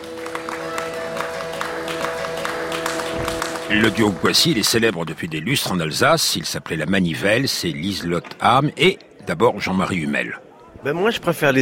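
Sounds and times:
audience clapping: 0:00.0 - 0:07.4
speech: 0:03.7 - 0:11.6.

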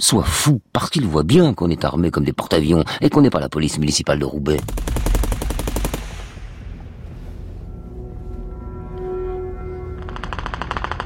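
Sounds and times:
speech: 0:00.0 - 0:05.2
bursts of rapid automatic gunfire: 0:04.6 - 0:06.4
lingering rumble: 0:04.6 - 0:08.1
steady tonal hum: 0:04.6 - 0:10.4.

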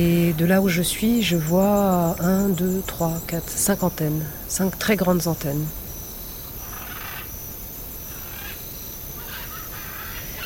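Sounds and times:
speech: 0:00.0 - 0:05.8
crows cawing near a tall antenna: 0:08.1 - 0:10.4.

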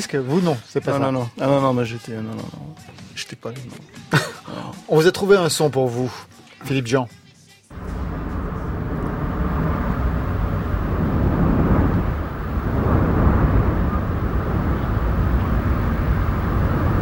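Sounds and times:
speech: 0:00.0 - 0:07.8
wind blowing: 0:07.7 - 0:17.0.

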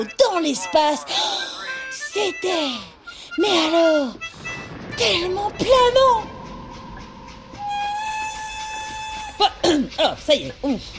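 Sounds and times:
speech: 0:00.0 - 0:01.5, 0:02.1 - 0:06.3, 0:09.4 - 0:10.9
train arriving: 0:03.6 - 0:10.9.

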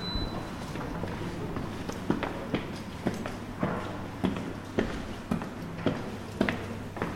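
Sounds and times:
footsteps climbing the grand staircase of the former Hôtel-Dieu-le-Comte in Troyes: 0:00.2 - 0:07.1.

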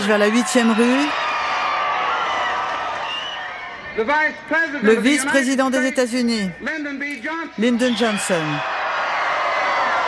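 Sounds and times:
speech: 0:00.0 - 0:01.2, 0:04.0 - 0:08.8
crowd cheering and applauding: 0:00.0 - 0:04.1, 0:07.6 - 0:10.0.

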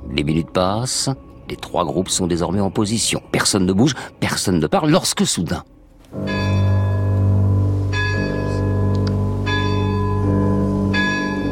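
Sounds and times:
speech: 0:00.2 - 0:06.2
large castle clock bell striking midnight: 0:06.2 - 0:11.5.

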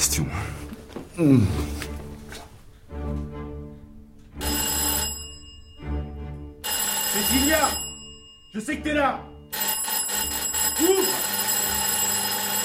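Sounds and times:
speech: 0:01.2 - 0:01.7, 0:08.6 - 0:09.3
doorbell ringing insistently: 0:04.4 - 0:12.6.

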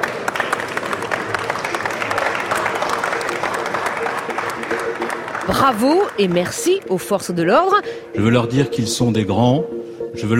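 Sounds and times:
audience applause: 0:00.0 - 0:07.2
faint murmur of voices: 0:00.0 - 0:09.5
speech: 0:05.5 - 0:10.3.

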